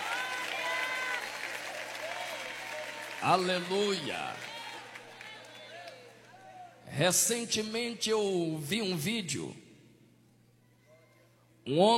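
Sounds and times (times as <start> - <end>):
audience applauding: 0.0 - 6.5
speech: 3.2 - 4.5, 6.9 - 9.6, 11.7 - 11.9.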